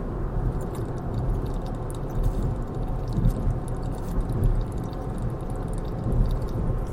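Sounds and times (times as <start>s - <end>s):
person drinking water: 0.6s - 6.9s.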